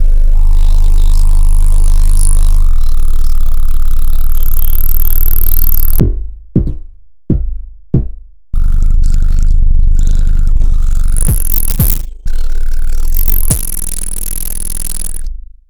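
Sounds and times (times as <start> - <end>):
experimental bass sounds: 0.0 - 6.0, 8.6 - 15.3.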